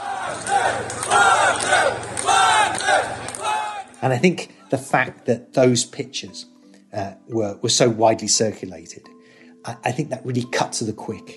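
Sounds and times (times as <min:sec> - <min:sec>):
Russians cheering Prigozhin: 0:00.0 - 0:04.0
speech: 0:04.0 - 0:11.3.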